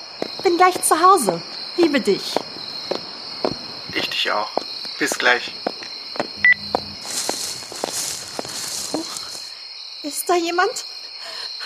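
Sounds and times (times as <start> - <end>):
speech: 0.4 - 2.4, 4.2 - 5.7, 10.1 - 10.9
footsteps on a short walk through a park: 4.6 - 9.6
high-pitched drone: 6.4 - 7.4.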